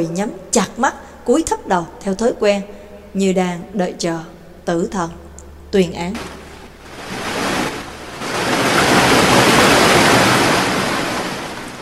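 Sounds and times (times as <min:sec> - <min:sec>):
speech: 0:00.0 - 0:06.4
30-metre wave crashing down on a snake-shaped boat: 0:06.2 - 0:11.8.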